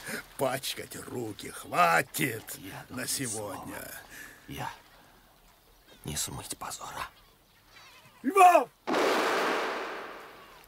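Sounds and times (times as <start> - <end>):
speech: 0.4 - 4.8, 6.0 - 7.2, 8.2 - 9.3
gunshot of a man shooting himself in the temple: 8.9 - 10.5.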